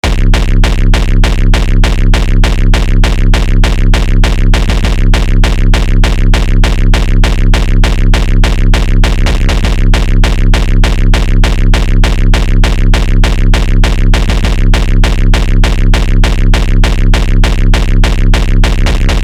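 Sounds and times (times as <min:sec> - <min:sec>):
kick drum: 0:00.0 - 0:19.2.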